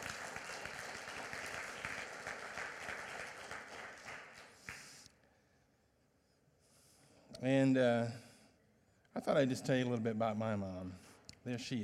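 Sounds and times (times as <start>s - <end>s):
audience clapping: 0.0s - 5.0s
speech: 7.4s - 8.3s, 9.2s - 11.8s.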